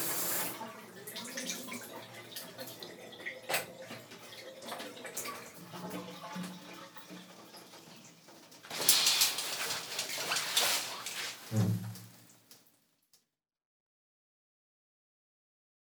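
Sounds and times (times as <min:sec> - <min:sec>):
person taking a shower: 0:00.0 - 0:12.6.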